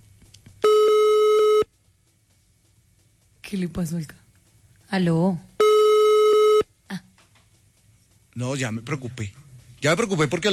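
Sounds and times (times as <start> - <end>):
phone call ringback tone: 0.6 - 1.7, 5.6 - 6.6
speech: 3.5 - 4.2, 4.9 - 5.5, 8.4 - 10.5.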